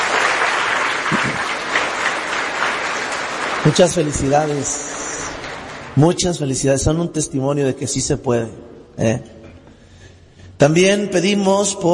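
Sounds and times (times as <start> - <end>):
crowd applauding: 0.0 - 6.7
speech: 3.6 - 5.0, 6.0 - 9.4, 10.6 - 11.9.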